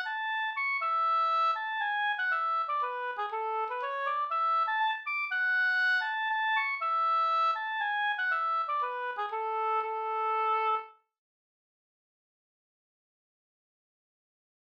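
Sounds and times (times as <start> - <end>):
polska folk dance tune: 0.0 - 10.8.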